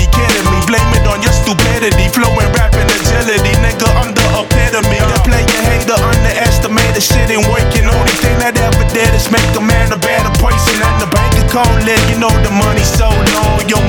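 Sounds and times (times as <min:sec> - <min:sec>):
motivational hip hop background music: 0:00.0 - 0:13.8
person rapping: 0:00.0 - 0:13.8.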